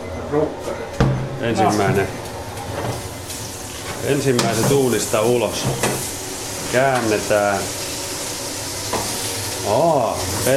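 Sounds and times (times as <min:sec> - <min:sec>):
speech: 0:00.3 - 0:03.1, 0:04.0 - 0:06.1, 0:06.7 - 0:07.8, 0:09.6 - 0:10.5
lampreys sizzling on a grill: 0:02.1 - 0:10.5.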